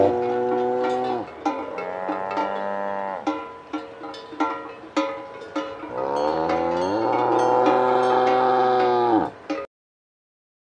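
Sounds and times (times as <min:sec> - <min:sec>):
kouprey mooing: 0:00.0 - 0:03.3, 0:05.9 - 0:09.4.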